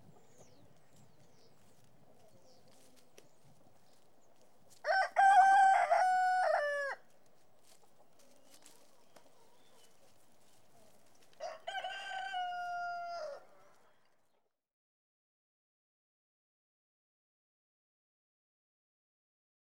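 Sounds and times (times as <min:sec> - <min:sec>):
rooster crowing: 0:04.8 - 0:07.0, 0:11.4 - 0:13.7.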